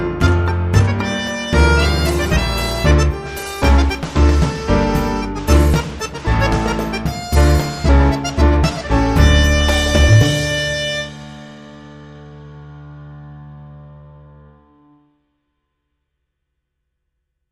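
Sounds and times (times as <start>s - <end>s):
tango music: 0.0s - 12.2s.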